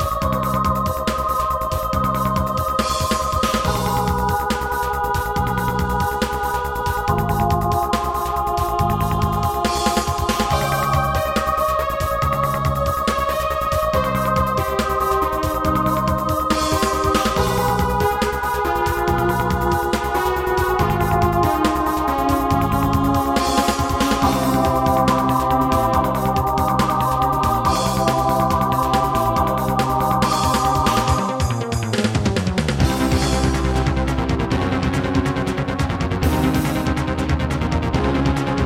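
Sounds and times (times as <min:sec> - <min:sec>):
Roland XV-2020 synthesizer module: 0:00.0 - 0:38.6.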